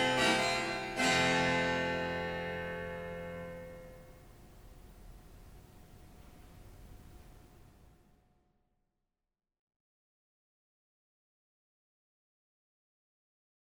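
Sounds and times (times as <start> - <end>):
harpsichord concerto: 0.0 - 3.9.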